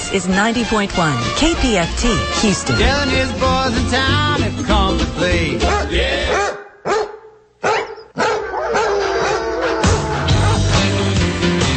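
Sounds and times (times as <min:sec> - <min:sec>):
speech: 0:00.1 - 0:07.0
dog barking and howling: 0:05.6 - 0:10.9.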